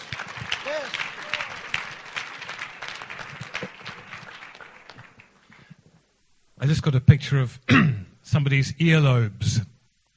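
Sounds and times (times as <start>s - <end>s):
audience clapping: 0.0s - 5.8s
speech: 6.6s - 9.7s.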